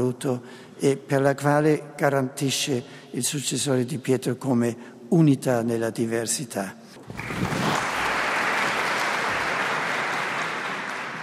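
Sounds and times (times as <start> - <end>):
speech: 0.0 - 7.6
large crowd applause: 7.0 - 11.2.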